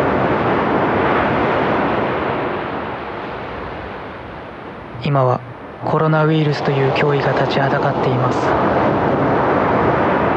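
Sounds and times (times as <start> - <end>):
gentle calm ocean waves: 0.0 - 10.3
speech: 5.1 - 9.0.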